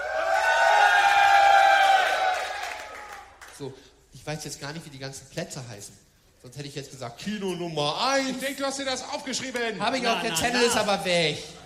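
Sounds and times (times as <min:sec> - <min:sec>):
large crowd cheering and shouting outdoors: 0:00.0 - 0:03.3
whoops from the crowd: 0:00.0 - 0:03.3
speech: 0:03.6 - 0:11.6.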